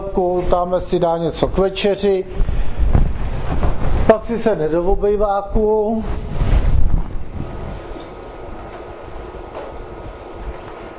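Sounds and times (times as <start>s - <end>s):
refrigerator humming: 0.0s - 10.9s
speech: 0.2s - 2.7s, 3.5s - 6.2s.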